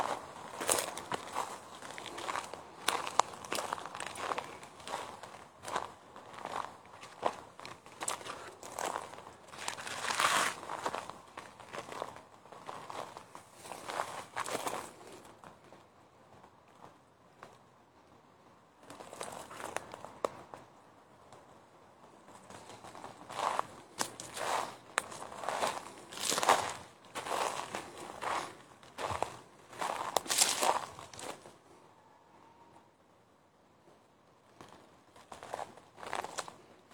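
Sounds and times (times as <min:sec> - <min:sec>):
footsteps on dry leaves and brush in a forest in Govind wildlife sanctuary: 0:00.0 - 0:15.0, 0:22.6 - 0:31.5, 0:35.3 - 0:36.6.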